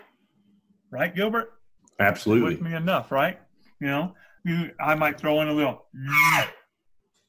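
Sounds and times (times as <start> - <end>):
speech: 0.9 - 6.6
cow calls made with a game call: 6.0 - 6.6.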